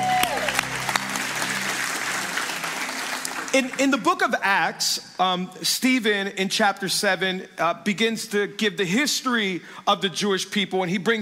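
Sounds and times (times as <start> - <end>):
audience cheering with whoops and shouts: 0.0 - 3.5
audience applauding: 0.0 - 4.2
speech: 3.6 - 11.2.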